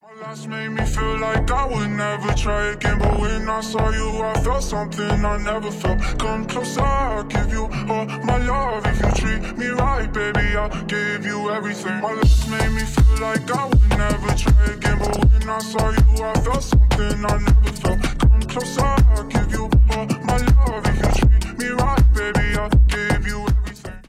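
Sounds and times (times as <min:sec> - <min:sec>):
remix music: 0:00.3 - 0:24.0.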